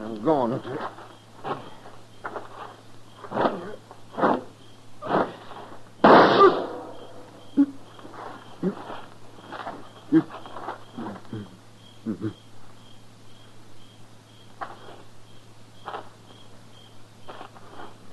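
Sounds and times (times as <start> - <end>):
voices: 0.0 - 12.5
gunshot: 6.0 - 7.2.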